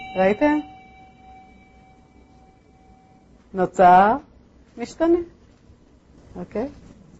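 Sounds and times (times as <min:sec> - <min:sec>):
bell ringing: 0:00.0 - 0:03.3
speech: 0:00.1 - 0:00.7, 0:03.5 - 0:05.4, 0:06.4 - 0:06.9.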